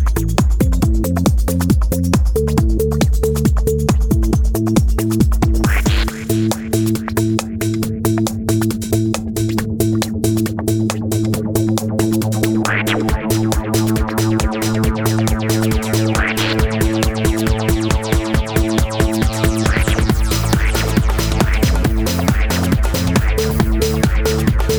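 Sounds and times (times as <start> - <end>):
UK house music: 0.0 - 24.7.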